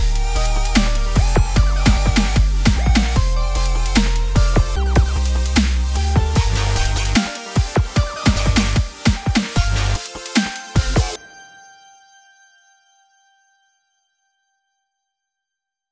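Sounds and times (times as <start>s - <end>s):
music beat: 0.0s - 11.2s.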